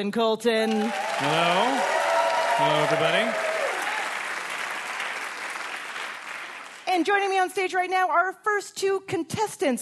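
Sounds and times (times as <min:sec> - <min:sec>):
speech: 0:00.0 - 0:02.0, 0:02.6 - 0:03.4, 0:07.0 - 0:09.7
audience applause: 0:00.6 - 0:06.9.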